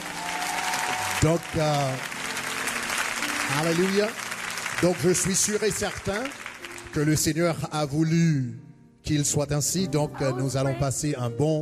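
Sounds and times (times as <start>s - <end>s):
audience applause: 0.0s - 7.4s
speech: 1.2s - 2.1s, 3.5s - 4.2s, 4.8s - 11.6s.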